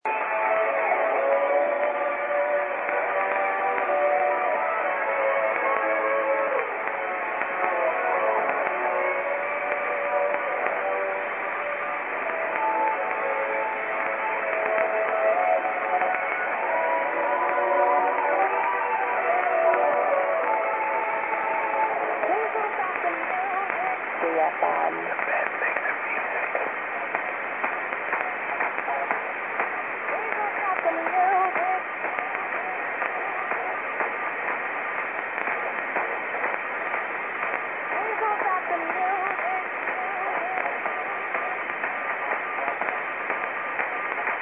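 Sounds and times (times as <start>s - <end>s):
FM radio relay broadcast from Cumbria on 102.2 in low conditions: 0.0s - 44.4s.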